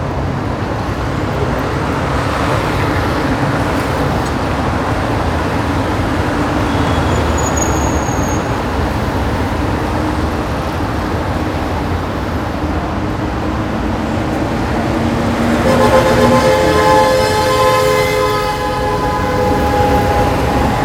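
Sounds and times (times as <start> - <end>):
city ambience: 0.0 - 20.8.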